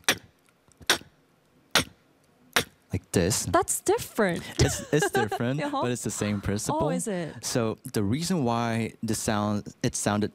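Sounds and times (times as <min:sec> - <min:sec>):
beatboxed click snare: 0:00.0 - 0:01.1, 0:01.7 - 0:02.0, 0:02.6 - 0:02.8
speech: 0:02.9 - 0:10.3
laughter: 0:04.4 - 0:07.4.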